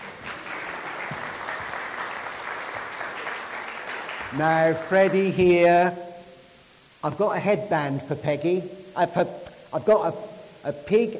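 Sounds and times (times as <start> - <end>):
audience applause welcoming a child: 0.0 - 5.4
speech: 4.3 - 6.0, 7.0 - 11.1.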